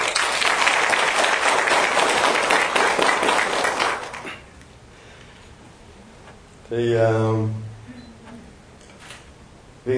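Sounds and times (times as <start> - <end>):
audience applause: 0.0 - 4.5
speech: 6.7 - 7.7.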